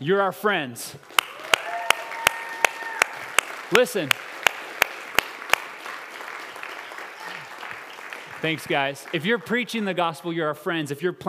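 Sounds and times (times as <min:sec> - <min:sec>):
speech: 0:00.0 - 0:01.3, 0:03.7 - 0:04.3, 0:08.4 - 0:11.2
audience applause, standing ovation: 0:01.1 - 0:09.9.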